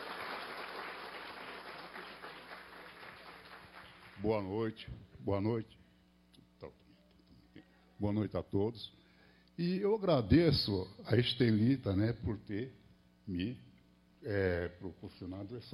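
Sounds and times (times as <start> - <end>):
round of applause: 0.0 - 4.4
speech: 4.2 - 5.8, 8.0 - 9.0, 9.6 - 13.6, 14.2 - 15.7.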